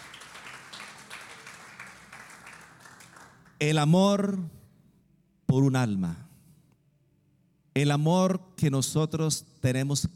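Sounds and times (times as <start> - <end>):
audience applauding: 0.0 - 3.6
speech: 3.6 - 4.6, 5.5 - 6.2, 7.8 - 10.1.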